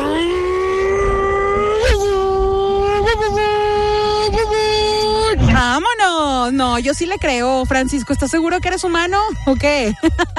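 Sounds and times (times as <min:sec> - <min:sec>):
person imitating a revving car engine: 0:00.0 - 0:05.6
speech: 0:06.7 - 0:10.3.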